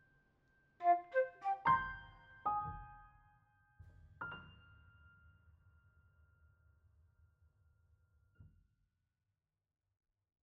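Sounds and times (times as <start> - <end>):
flute: 0.8 - 3.0.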